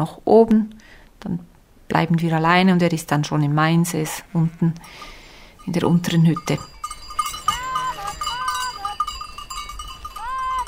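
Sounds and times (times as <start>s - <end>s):
speech: 0.0s - 6.7s
continuous outdoor hiss: 4.8s - 5.6s
cowbells jangling: 4.8s - 10.6s
sheep flock bleating on alpine pasture: 7.2s - 10.6s.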